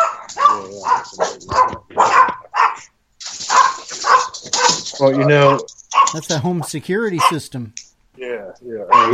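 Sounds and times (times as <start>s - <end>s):
small dogs barking and yipping at home: 0.0s - 6.3s, 7.2s - 7.4s, 8.8s - 9.1s
speech: 0.6s - 2.9s, 5.0s - 9.1s.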